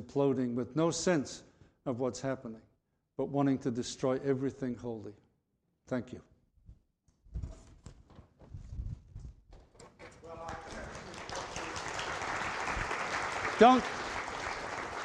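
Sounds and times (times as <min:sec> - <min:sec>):
speech: 0:00.1 - 0:05.2, 0:05.9 - 0:06.3, 0:13.6 - 0:14.0
audience applause: 0:10.2 - 0:15.0.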